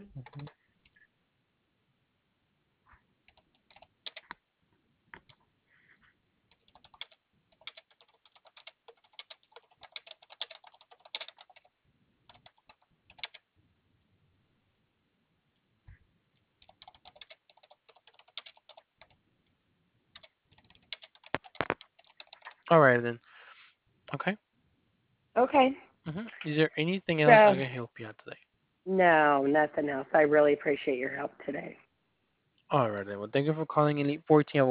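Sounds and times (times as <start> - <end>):
typing on a computer keyboard: 0.2 - 0.5, 3.2 - 4.4, 6.5 - 11.7, 12.3 - 13.5, 16.6 - 19.2, 20.1 - 22.8
speech: 22.7 - 23.2, 24.2 - 24.4, 25.5 - 31.8, 32.7 - 34.6.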